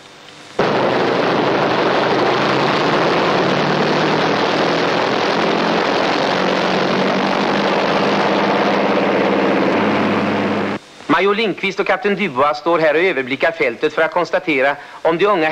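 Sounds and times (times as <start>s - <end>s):
heavy bomber aircraft engines droning at airfield: 0.6s - 10.8s
speech: 11.2s - 15.5s.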